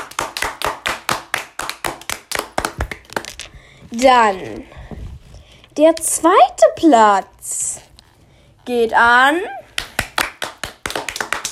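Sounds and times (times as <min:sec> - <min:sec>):
applause: 0:00.0 - 0:03.3, 0:09.8 - 0:11.5
speech: 0:03.9 - 0:04.8, 0:05.8 - 0:07.8, 0:08.7 - 0:09.6.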